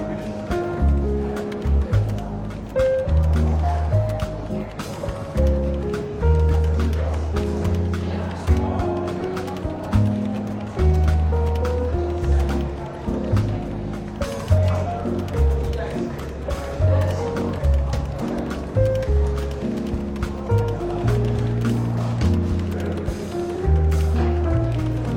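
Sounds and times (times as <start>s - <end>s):
murmur of voices in a London bookshop café: 0.0s - 25.1s
soft relaxed jazz in a bookshop café with walking bass: 0.0s - 25.1s.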